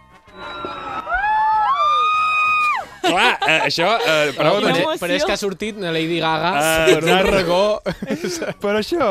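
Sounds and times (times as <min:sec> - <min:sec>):
large crowd screaming loudly: 0:00.0 - 0:03.6
laughter: 0:02.8 - 0:05.4, 0:06.6 - 0:08.7
speech: 0:03.1 - 0:09.0.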